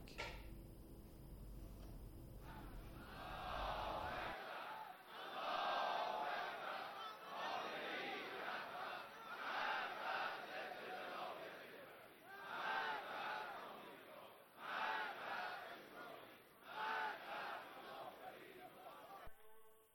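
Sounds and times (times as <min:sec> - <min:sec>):
low rumbling noise: 0:00.0 - 0:04.4
protest crowd chanting in street: 0:02.4 - 0:19.6.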